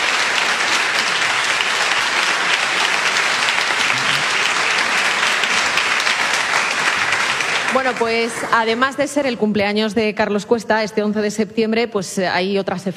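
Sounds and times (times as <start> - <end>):
studio audience applauding: 0.0 - 9.3
speech: 7.8 - 12.9.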